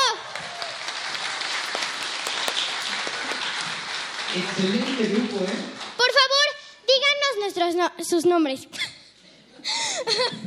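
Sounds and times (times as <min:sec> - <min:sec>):
audience applause: 0:00.0 - 0:06.1
speech: 0:04.4 - 0:08.9, 0:09.6 - 0:10.4.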